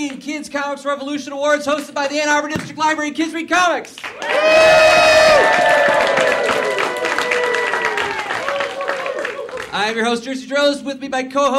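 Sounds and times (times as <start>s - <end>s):
speech: 0.0s - 6.5s, 9.8s - 11.5s
audience clapping at the 2014 Kids Comics Revolution Awards: 3.9s - 10.0s.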